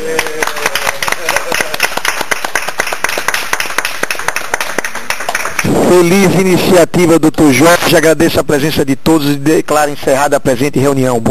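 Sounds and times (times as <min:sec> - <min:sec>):
round of applause from a group: 0:00.0 - 0:06.2
speech: 0:05.9 - 0:11.2.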